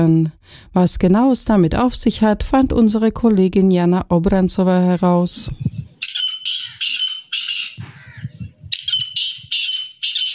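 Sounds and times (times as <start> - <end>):
speech: 0.0 - 5.8
grey partridges giving harsh grating squawks: 5.6 - 10.3.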